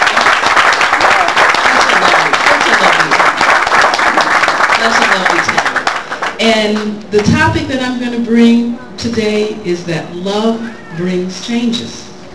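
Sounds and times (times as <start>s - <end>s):
audience applause for musicians: 0.0s - 6.4s
speech: 6.6s - 12.0s.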